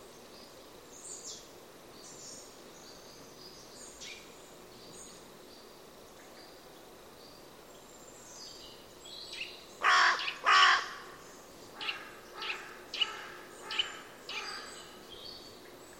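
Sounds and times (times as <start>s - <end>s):
bird cawing: 9.8s - 11.2s, 11.8s - 14.9s.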